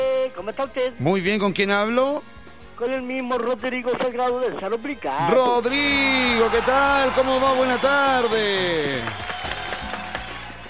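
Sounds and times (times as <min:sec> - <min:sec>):
speech: 0:00.4 - 0:09.3
person clapping hands: 0:06.6 - 0:10.6.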